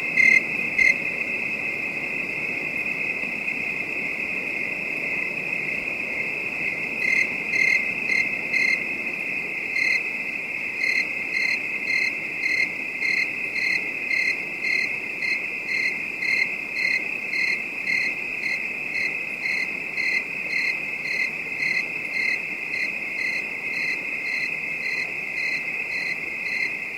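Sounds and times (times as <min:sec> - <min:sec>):
crickets trilling at night: 0:00.0 - 0:26.9.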